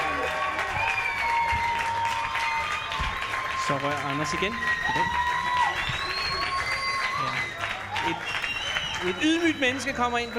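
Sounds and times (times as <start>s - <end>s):
audience clapping as a guest is welcomed at a live show: 0.0s - 10.3s
speech: 3.7s - 5.3s, 8.1s - 8.4s, 9.0s - 10.3s.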